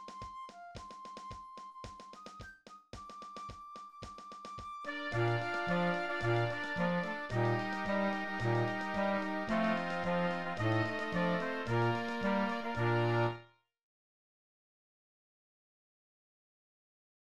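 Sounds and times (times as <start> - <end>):
B-flat tuba: 4.9 - 13.4.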